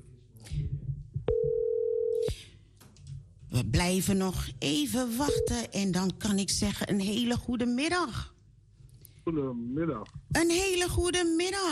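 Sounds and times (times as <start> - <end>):
telephone dialing tone for a call: 1.3 - 2.3
speech: 3.6 - 8.4, 9.3 - 11.7.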